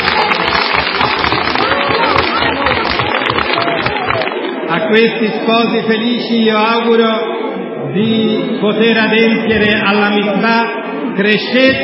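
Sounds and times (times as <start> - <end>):
wedding guests applauding: 0.0 - 4.9
crowd voices: 0.0 - 11.8
speech: 4.9 - 7.3, 7.9 - 11.8.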